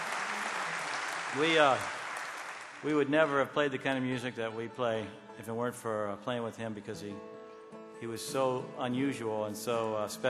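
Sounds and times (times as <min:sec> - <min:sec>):
live audience clapping at a music concert: 0:00.0 - 0:03.9
speech: 0:01.3 - 0:02.0, 0:02.8 - 0:07.3, 0:08.0 - 0:10.2
person's voice: 0:02.8 - 0:07.2, 0:08.0 - 0:10.2.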